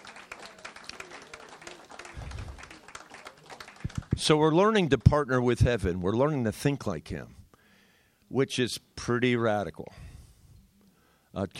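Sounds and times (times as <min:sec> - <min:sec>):
church congregation applauding during a worship service: 0:00.0 - 0:05.1
speech: 0:04.2 - 0:07.4, 0:08.3 - 0:10.0, 0:11.4 - 0:11.5.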